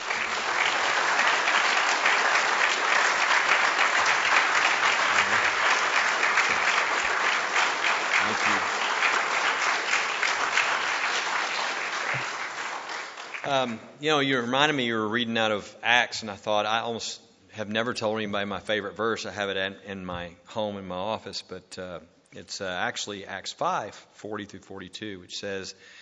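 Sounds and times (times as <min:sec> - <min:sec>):
audience applause welcoming a speaker at a church gathering: 0:00.0 - 0:13.8
speech: 0:13.5 - 0:26.0.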